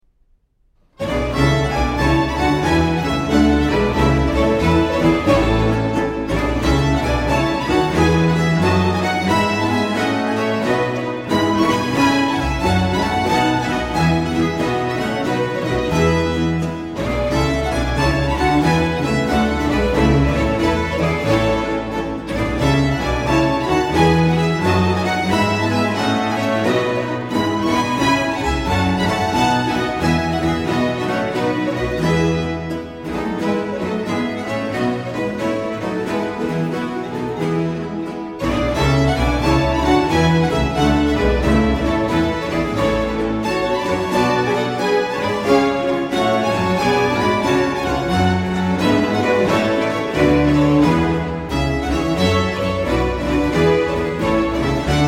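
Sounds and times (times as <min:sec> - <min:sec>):
string ensemble with continuo playing a gigue in A major: 0:00.8 - 0:55.0.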